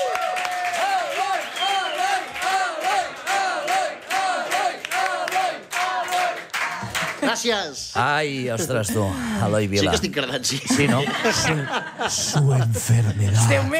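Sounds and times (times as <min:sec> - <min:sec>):
audience applause and cheering: 0:00.0 - 0:07.2
speech: 0:07.3 - 0:13.7
laughter: 0:08.5 - 0:13.7.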